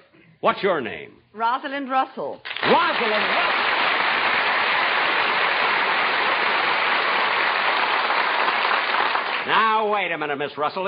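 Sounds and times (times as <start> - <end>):
speech: 0.4 - 4.0, 9.5 - 10.8
applause in a restaurant: 2.5 - 9.6.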